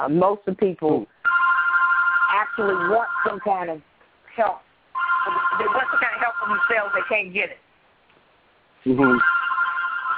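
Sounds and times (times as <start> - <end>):
speech: 0.0 - 1.2, 2.6 - 7.6, 8.8 - 9.4
electronic phone ringing: 1.2 - 3.7, 5.0 - 7.4, 9.0 - 10.1.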